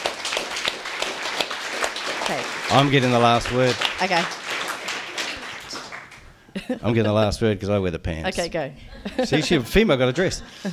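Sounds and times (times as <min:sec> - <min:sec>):
audience applause: 0:00.0 - 0:06.4
speech: 0:02.3 - 0:04.4, 0:06.6 - 0:10.7
laughter: 0:06.6 - 0:07.4, 0:08.9 - 0:10.7.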